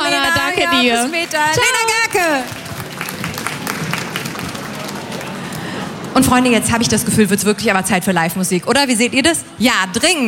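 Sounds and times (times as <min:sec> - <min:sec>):
crowd applause: 0:00.2 - 0:06.2
speech: 0:00.6 - 0:02.6, 0:06.3 - 0:10.2.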